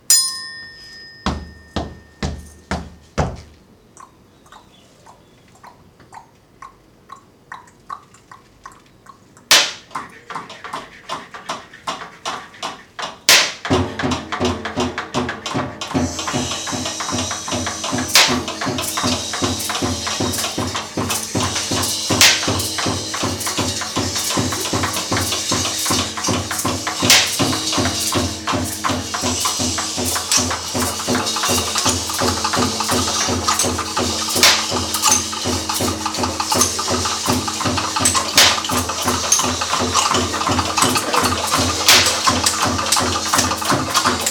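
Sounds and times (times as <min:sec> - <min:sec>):
kitchen ambience: 0:00.0 - 0:06.5, 0:08.2 - 0:44.3.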